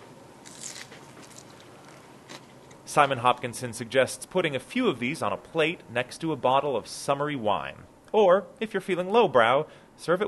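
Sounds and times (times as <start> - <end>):
crunching on a bite of lobster on a lettuce leaf: 0.4 - 2.9
speech: 2.9 - 10.2.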